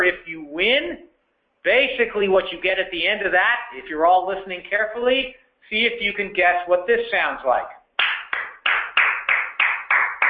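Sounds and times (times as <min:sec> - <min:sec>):
speech: 0:01.6 - 0:07.8
applause: 0:08.0 - 0:10.2.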